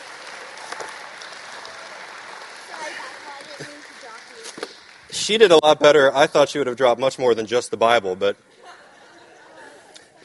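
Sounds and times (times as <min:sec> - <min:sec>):
faint voices and cheers: 0:00.0 - 0:04.5
audience clapping: 0:00.0 - 0:05.6
speech: 0:05.2 - 0:08.5
laughter: 0:08.5 - 0:10.2.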